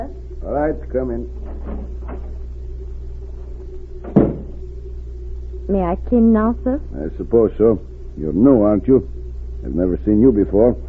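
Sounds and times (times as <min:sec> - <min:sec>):
speech: 0:00.0 - 0:02.2, 0:05.7 - 0:10.8
maid knocking on a hotel room door: 0:04.0 - 0:04.6.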